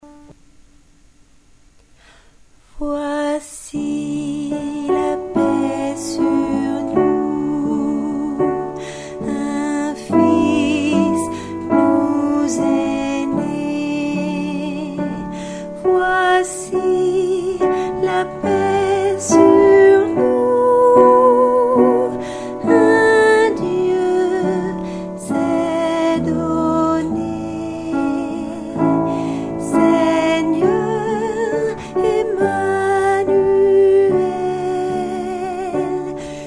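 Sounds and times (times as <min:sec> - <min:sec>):
alto voice singing: 0:02.8 - 0:36.4.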